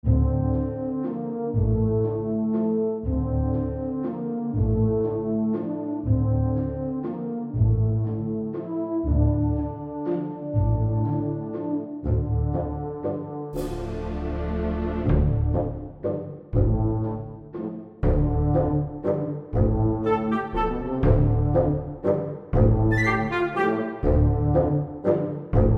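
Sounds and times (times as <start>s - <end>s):
epic orchestral music: 0.0s - 25.7s.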